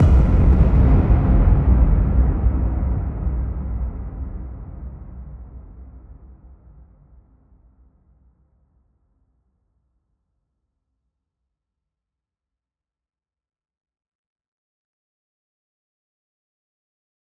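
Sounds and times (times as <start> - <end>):
explosion: 0.0 - 5.8.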